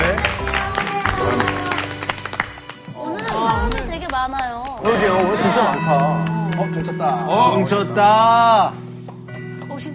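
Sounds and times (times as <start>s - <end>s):
studio audience applauding: 0.0s - 7.3s
speech: 4.8s - 8.8s.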